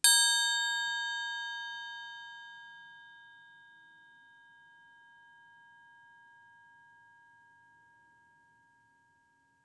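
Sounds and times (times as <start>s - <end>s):
triangle: 0.0s - 9.6s.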